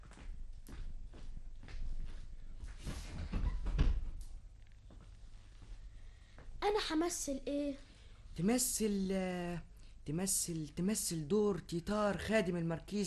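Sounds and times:
shuffling footsteps: 0.0 - 6.5
speech: 6.6 - 13.0.

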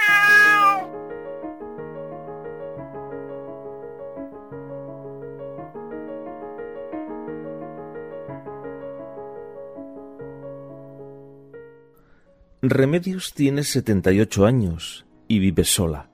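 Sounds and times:
cat meowing: 0.0 - 0.9
speech: 12.6 - 16.1.

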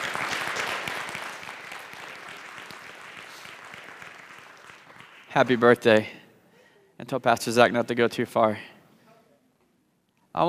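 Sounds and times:
church congregation applauding: 0.0 - 6.1
speech: 5.3 - 6.2, 7.0 - 8.7.

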